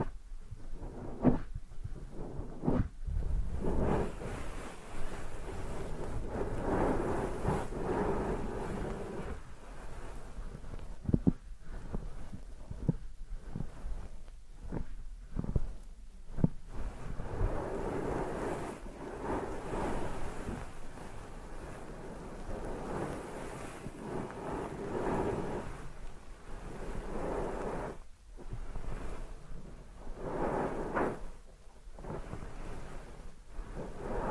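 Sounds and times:
deep ear massage muffled rubbing: 0.0s - 34.3s.

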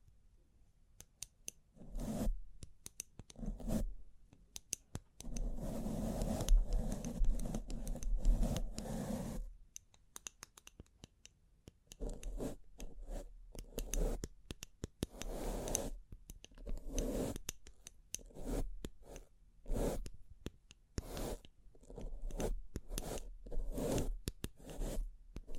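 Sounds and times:
sharp clicks and taps: 1.0s - 1.7s, 2.6s - 3.4s, 4.3s - 5.5s, 9.7s - 19.3s, 20.0s - 23.3s, 24.0s - 25.5s
bling bling triggers scratchy rubbing strokes: 1.8s - 2.4s, 3.4s - 4.0s, 5.2s - 9.5s, 12.0s - 14.3s, 15.0s - 16.0s, 16.7s - 17.6s, 18.2s - 20.2s, 21.0s - 25.5s.

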